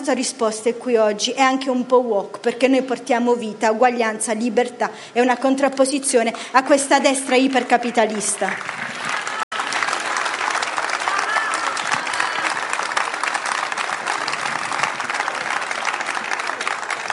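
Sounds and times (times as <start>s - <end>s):
speech: 0.0s - 9.2s
large audience applause: 8.1s - 17.1s
faint crowd murmur: 9.2s - 17.1s.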